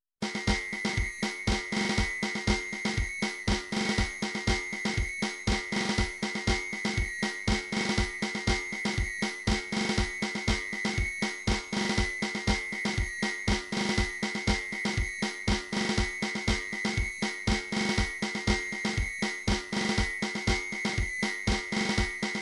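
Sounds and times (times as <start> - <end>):
drum pattern: 0.2 - 22.3.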